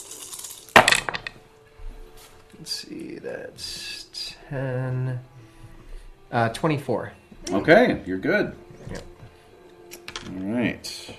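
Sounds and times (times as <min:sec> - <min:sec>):
dice rolling on a hard surface: 0:00.0 - 0:01.4
speech: 0:02.6 - 0:05.3, 0:06.3 - 0:09.1.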